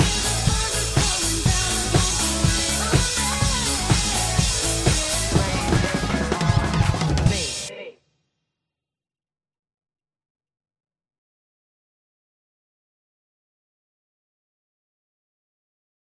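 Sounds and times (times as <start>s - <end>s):
drums playing: 0.0s - 7.7s.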